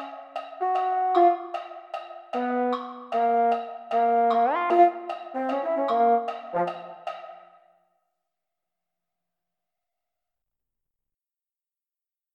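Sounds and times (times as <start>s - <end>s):
mellophones playing: 0.0s - 1.8s, 2.4s - 7.1s.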